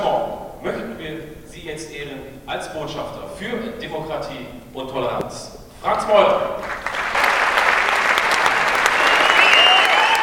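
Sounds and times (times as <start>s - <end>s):
speech: 0.6s - 6.8s
crowd applauding: 6.6s - 10.2s
faint cheering or whistles: 8.8s - 10.2s.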